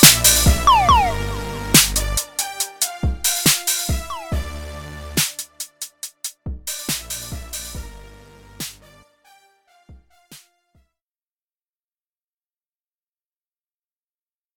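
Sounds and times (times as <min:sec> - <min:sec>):
pop song: 0:00.0 - 0:05.4.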